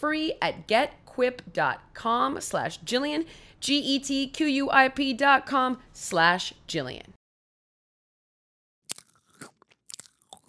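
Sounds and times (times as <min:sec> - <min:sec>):
speech: 0:00.0 - 0:07.2
crunchy chewing of food: 0:08.9 - 0:10.4.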